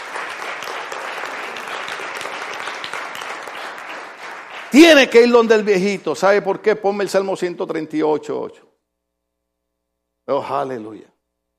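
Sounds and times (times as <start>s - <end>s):
audience applause: 0.0s - 5.6s
speech: 4.7s - 8.6s, 10.3s - 11.1s.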